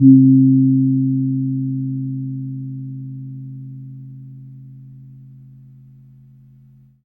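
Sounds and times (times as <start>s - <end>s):
kempur gong: 0.0s - 6.8s.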